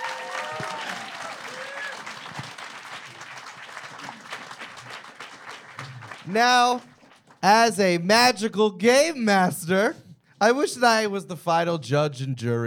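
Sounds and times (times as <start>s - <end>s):
round of applause: 0.0s - 7.4s
speech: 6.3s - 12.6s.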